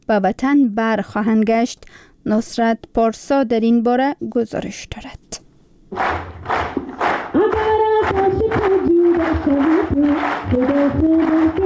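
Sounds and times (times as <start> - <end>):
speech: 0.1 - 6.6, 9.4 - 11.6
rhythmic clapping in unison to cheer athletes: 5.9 - 11.6.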